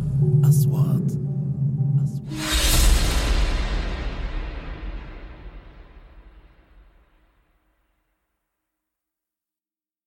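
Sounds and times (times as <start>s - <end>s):
horror music: 0.0s - 6.7s.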